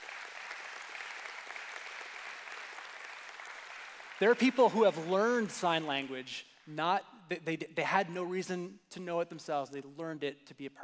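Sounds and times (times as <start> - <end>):
audience applause: 0.0 - 5.4
speech: 4.2 - 10.8.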